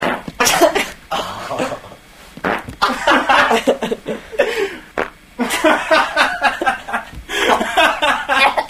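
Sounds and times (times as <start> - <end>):
farts: 0.0 - 0.5, 2.4 - 2.8, 5.0 - 5.2
laughter: 0.6 - 2.0, 2.8 - 4.8, 5.4 - 8.6.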